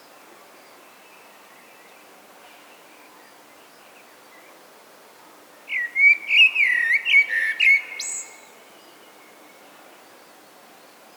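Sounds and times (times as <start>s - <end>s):
common blackbird singing: 5.7s - 8.6s.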